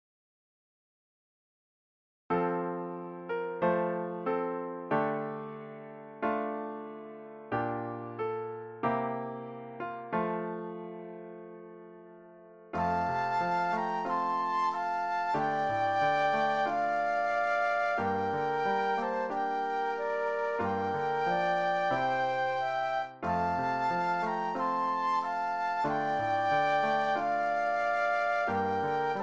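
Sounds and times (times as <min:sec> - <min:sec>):
piano: 0:02.3 - 0:29.2
flute duet: 0:12.8 - 0:29.2.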